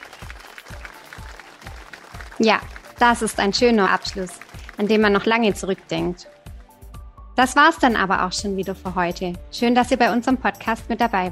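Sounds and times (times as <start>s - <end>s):
applause: 0.0s - 6.6s
speech: 2.4s - 6.4s, 7.4s - 11.3s.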